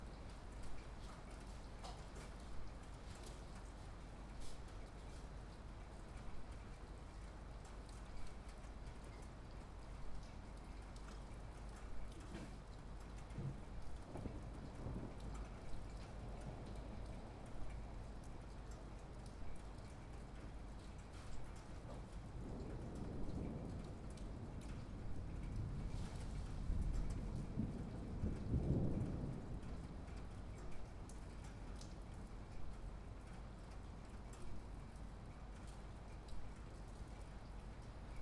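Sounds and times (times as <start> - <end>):
rain outside a window: 0.0 - 38.2
thunder: 13.3 - 17.2, 21.9 - 30.6.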